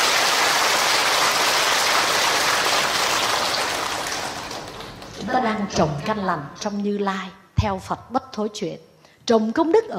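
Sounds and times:
audience clapping at a Buddhist dharma talk: 0.0s - 5.5s
speech: 5.3s - 9.9s.

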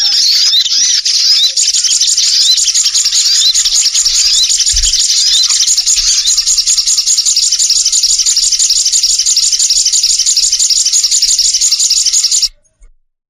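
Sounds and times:
birds giving high squeaky arched chirps: 0.0s - 12.6s.

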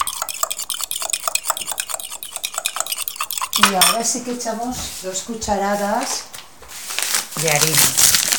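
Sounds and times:
whisking sponge-cake batter with oil and milk in a bowl: 0.0s - 5.2s
speech: 3.6s - 6.3s, 7.4s - 8.2s.

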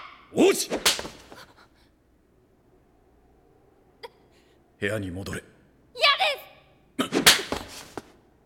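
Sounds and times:
speech: 0.3s - 1.2s, 4.8s - 5.5s
open-handed slap across a young prince's face by his father: 0.7s - 1.4s, 7.1s - 8.1s.

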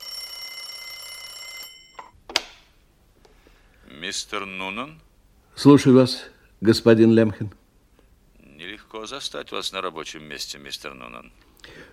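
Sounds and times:
telephone ringing: 0.0s - 2.2s
speech: 4.0s - 7.6s, 9.0s - 11.9s.

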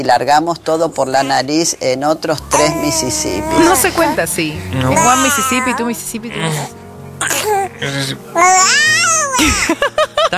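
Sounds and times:
speech: 0.0s - 8.8s, 9.4s - 10.3s
baby babbling: 2.4s - 9.4s
laughter: 9.4s - 10.3s.

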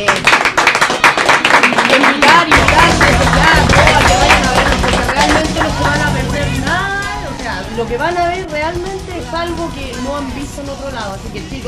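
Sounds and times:
applause: 0.0s - 6.4s
speech: 7.9s - 11.6s.

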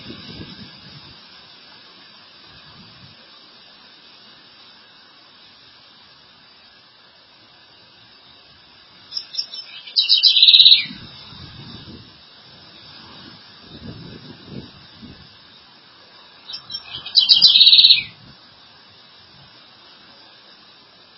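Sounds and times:
southern house wren singing: 9.1s - 11.1s, 16.2s - 18.2s.

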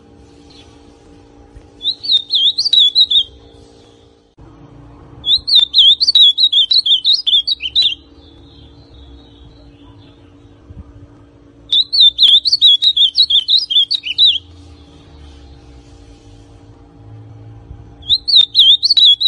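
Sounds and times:
ultramarine grosbeak song: 1.8s - 4.0s, 5.2s - 10.6s, 11.7s - 15.7s, 18.0s - 19.2s.

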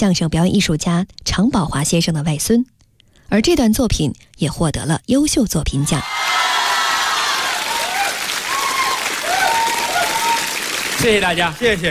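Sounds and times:
speech: 0.0s - 2.7s, 3.3s - 6.2s, 11.0s - 11.8s
live audience applause after a crosstalk xiangsheng performance at a competition: 6.1s - 11.8s.

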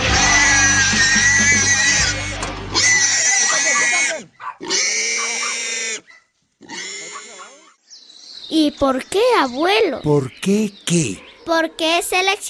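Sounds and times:
farm-raised pigs grunting, oinking and squealing: 0.1s - 7.8s
speech: 8.7s - 12.4s.

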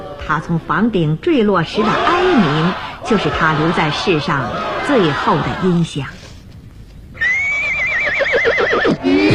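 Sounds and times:
speech: 0.3s - 6.2s
horse neighing as a rider mounts: 7.2s - 9.2s.

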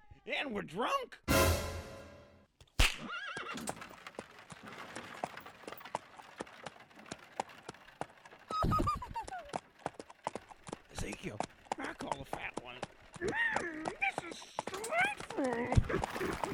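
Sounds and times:
speech: 0.2s - 1.6s, 11.2s - 16.5s
horse pulling a wagon around Devil's Tower whinnying: 3.0s - 3.8s
horse hooves clip-clopping around Devil's Tower: 3.0s - 16.5s.

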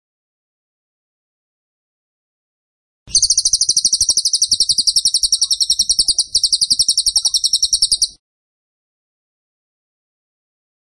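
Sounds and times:
bird shrill trill: 3.1s - 8.2s.

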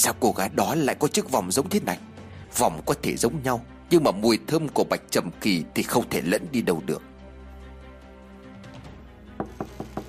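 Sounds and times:
speech: 0.0s - 7.1s
knocking on a door: 9.4s - 10.0s.

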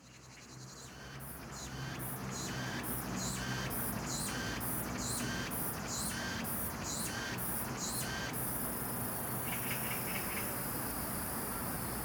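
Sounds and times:
cicadas droning at an apartment complex in Seoul, South Korea: 0.1s - 12.0s.

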